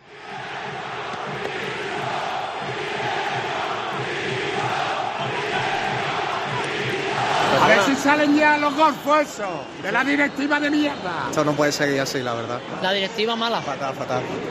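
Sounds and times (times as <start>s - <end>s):
stadium crowd jeering in protest: 0.1s - 11.5s
speech: 8.0s - 14.5s.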